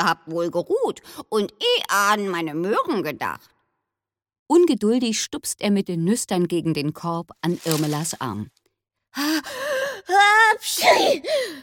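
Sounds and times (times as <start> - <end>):
speech: 0.0 - 3.5, 4.5 - 11.6
sneeze: 10.6 - 11.2.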